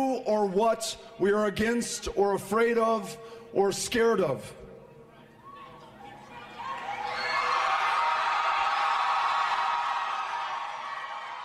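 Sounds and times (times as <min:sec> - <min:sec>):
speech: 0:00.2 - 0:04.6
large rally crowd cheering and shouting: 0:05.2 - 0:11.4.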